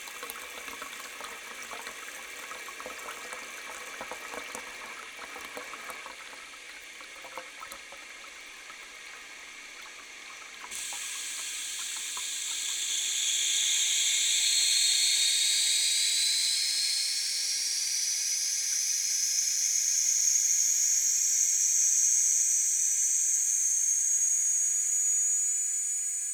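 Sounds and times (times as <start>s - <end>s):
toilet cistern: 0.0s - 17.4s.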